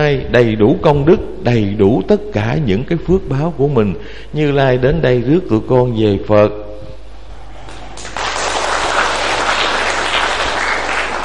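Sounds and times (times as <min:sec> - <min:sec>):
speech: 0:00.0 - 0:06.6
Buddhist congregation applauding at the Long Thành practice hall: 0:07.6 - 0:11.2.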